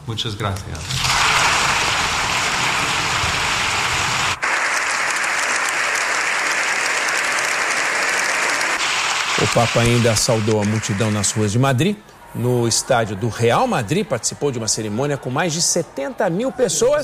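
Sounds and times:
speech: 0:00.1 - 0:01.4, 0:09.5 - 0:17.0
prolonged applause from a large audience: 0:01.1 - 0:11.8.

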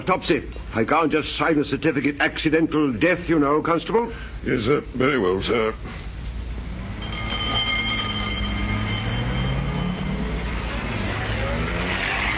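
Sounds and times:
speech: 0:00.0 - 0:06.1
ambulance driving off: 0:06.8 - 0:12.3.

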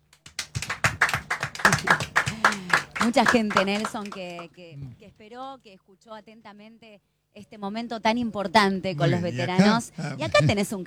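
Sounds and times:
small group applause: 0:00.0 - 0:04.5
laughter: 0:00.5 - 0:04.4, 0:09.0 - 0:10.8
speech: 0:03.1 - 0:10.8.

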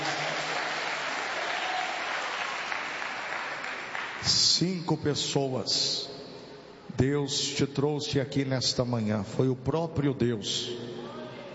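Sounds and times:
audience applause: 0:00.0 - 0:04.2
speech: 0:04.2 - 0:06.1, 0:06.9 - 0:11.0.

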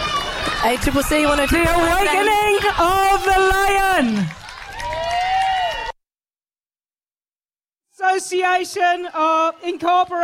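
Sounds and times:
crowd applauding and cheering after a performance: 0:00.0 - 0:06.0
speech: 0:00.6 - 0:04.4, 0:08.2 - 0:10.2.

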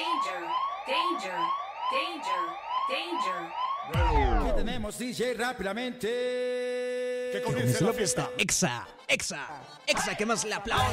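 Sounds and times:
siren alarm sound effect: 0:00.0 - 0:04.9
speech: 0:00.9 - 0:10.9.

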